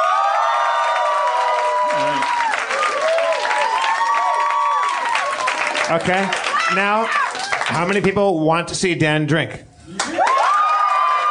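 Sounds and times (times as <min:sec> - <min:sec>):
crowd cheering: 0:00.0 - 0:08.0, 0:09.9 - 0:11.3
applause: 0:00.0 - 0:08.1, 0:10.0 - 0:11.3
speech: 0:05.9 - 0:09.7.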